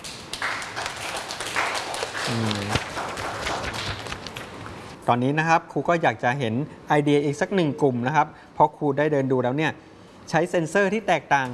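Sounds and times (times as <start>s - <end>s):
classroom applause: 0.0s - 4.6s
speech: 2.3s - 3.0s, 5.1s - 11.5s.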